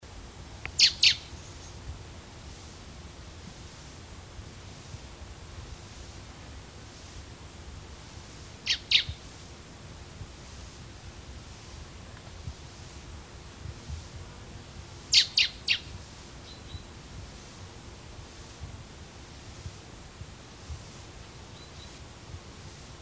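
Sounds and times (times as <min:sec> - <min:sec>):
background hiss: 0:00.0 - 0:23.0
Common blackbird sharp calls: 0:00.8 - 0:01.3, 0:08.7 - 0:09.2.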